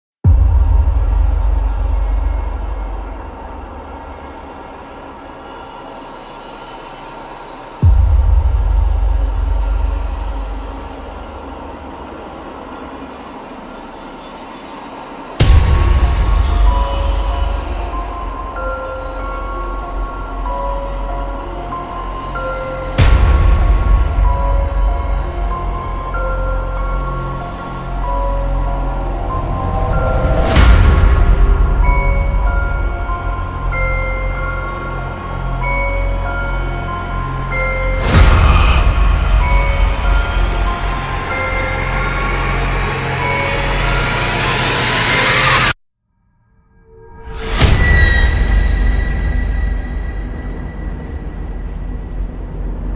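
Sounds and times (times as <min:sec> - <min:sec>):
epic intense creepy horror music: 0:00.3 - 0:45.8, 0:46.4 - 0:52.9.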